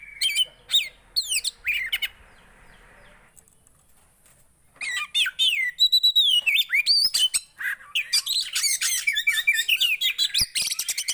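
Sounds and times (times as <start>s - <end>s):
Oriental magpie-robin song with whistles, trills and buzzy rasps: 0.0s - 4.0s, 4.7s - 11.1s.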